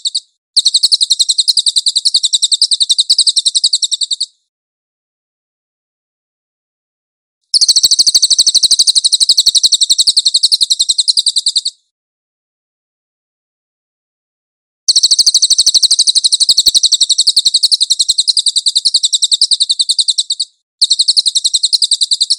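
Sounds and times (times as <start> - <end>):
cililin chattering trills: 0.0 - 4.3, 7.5 - 11.8, 14.9 - 22.3.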